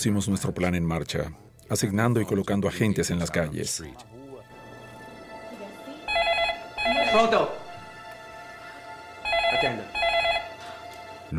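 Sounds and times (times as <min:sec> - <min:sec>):
speech: 0:00.0 - 0:04.2, 0:07.1 - 0:07.6, 0:09.6 - 0:10.0
telephone ringing with an incoming call: 0:06.0 - 0:07.4, 0:09.2 - 0:10.8.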